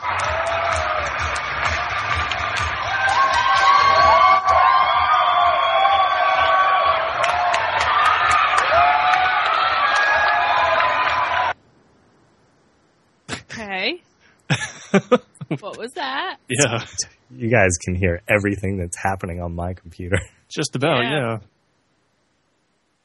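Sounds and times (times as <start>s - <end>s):
large crowd cheering: 0.0s - 11.6s, 14.5s - 21.4s
laughter: 14.5s - 21.4s
speech: 16.5s - 21.5s.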